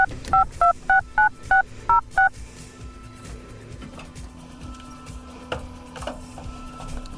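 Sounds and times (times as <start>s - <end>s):
DTMF touch-tone beeps dialing a telephone number: 0.0s - 2.3s.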